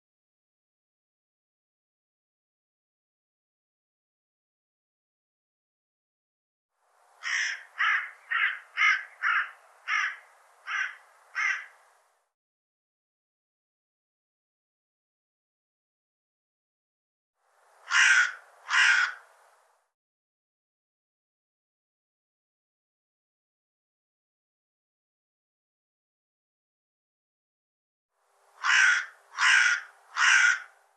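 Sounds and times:
harsh bird calls: 7.2s - 11.8s, 17.9s - 19.2s, 28.6s - 30.8s.

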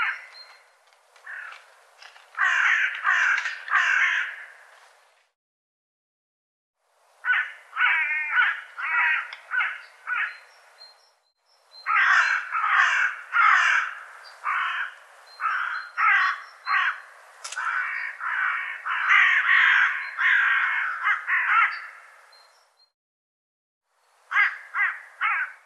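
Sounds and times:
bird calling with rough grating caws: 0.0s - 1.8s, 2.4s - 4.8s, 7.2s - 10.5s, 11.8s - 22.3s, 24.3s - 25.6s.

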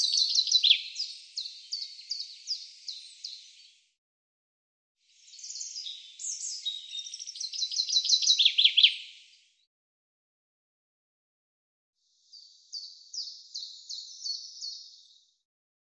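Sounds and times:
bird chirping in rapid high sharp trilling runs: 0.0s - 3.8s, 5.2s - 9.4s, 12.2s - 15.3s.

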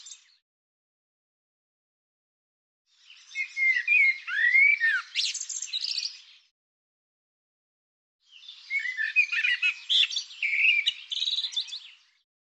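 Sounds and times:
bird song: 0.0s - 0.4s, 2.9s - 6.5s, 8.2s - 12.3s.

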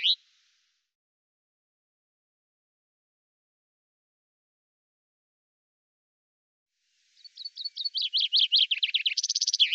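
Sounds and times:
bird trills: 7.3s - 9.7s.

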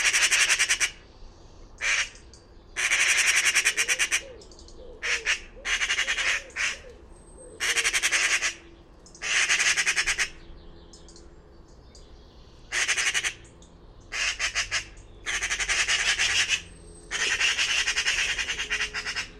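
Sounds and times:
bird chattering: 1.8s - 11.3s, 12.7s - 19.3s.

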